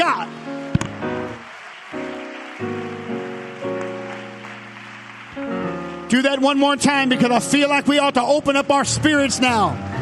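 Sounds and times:
audience clapping hands: 0.0s - 7.1s
speech: 6.1s - 9.9s.

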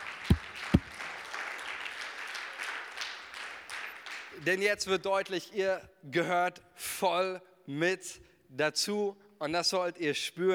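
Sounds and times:
audience applause: 0.0s - 4.2s
speech: 4.4s - 10.5s.

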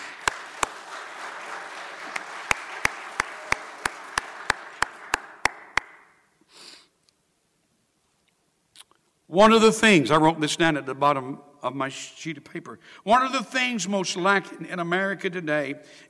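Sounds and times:
audience clapping: 0.0s - 6.1s
speech: 9.3s - 16.0s.

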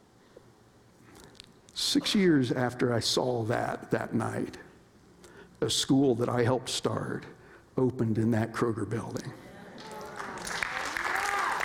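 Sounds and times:
speech: 1.8s - 4.7s, 5.6s - 9.4s
audience applause: 9.8s - 11.6s.

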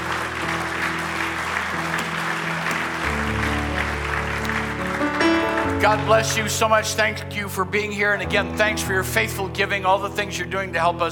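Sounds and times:
hand clapping: 0.0s - 7.0s
speech: 5.8s - 11.0s.

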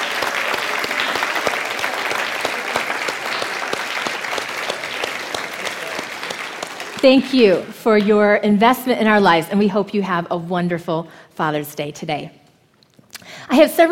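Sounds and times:
audience applause for dads: 0.0s - 7.8s
speech: 7.0s - 12.4s, 13.4s - 13.9s.

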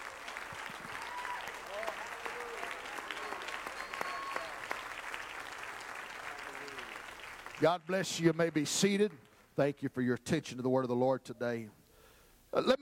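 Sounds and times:
audience applauding with hand claps of praise: 0.0s - 9.3s
speech: 7.6s - 11.8s, 12.5s - 12.7s.

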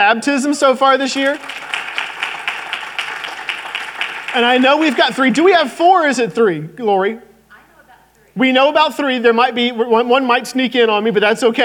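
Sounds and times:
speech: 0.0s - 1.9s, 4.4s - 7.3s, 8.4s - 11.6s
audience applause: 1.0s - 5.7s.

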